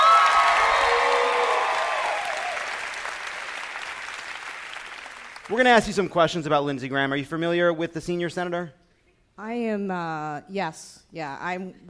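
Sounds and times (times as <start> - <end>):
audience applause: 0.0 - 6.0
speech: 5.5 - 8.8, 9.4 - 11.8.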